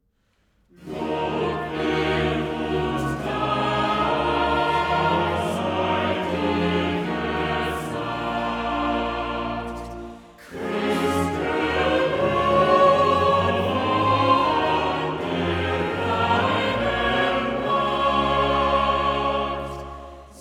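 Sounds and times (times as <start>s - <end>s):
chorale: 0.2s - 20.3s.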